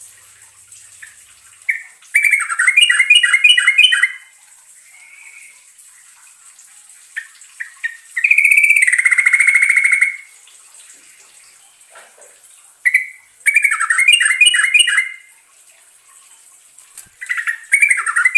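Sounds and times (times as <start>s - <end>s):
yellow-vented bulbul song: 1.0s - 4.3s, 7.2s - 10.4s, 12.8s - 15.3s, 17.0s - 18.3s.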